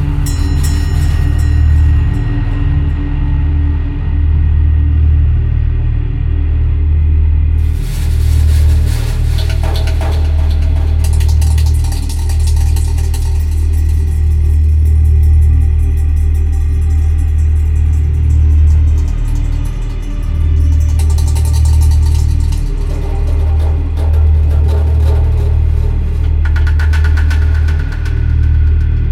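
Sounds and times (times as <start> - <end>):
deep steady rumbling drone: 0.0 - 29.1
bright hissing scrapes: 7.6 - 12.6
hands rubbing an overturned bass drum: 7.6 - 29.1.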